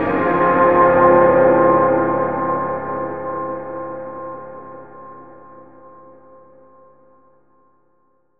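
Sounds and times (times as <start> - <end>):
dark atmospheric synth pad: 0.0 - 6.6.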